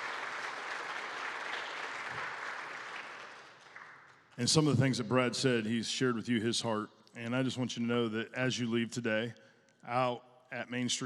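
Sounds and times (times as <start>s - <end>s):
audience applause: 0.0s - 4.1s
speech: 4.4s - 11.0s.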